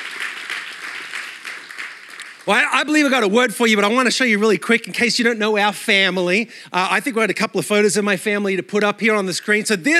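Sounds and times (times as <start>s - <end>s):
audience round of applause: 0.0s - 2.8s
speech: 2.5s - 9.9s.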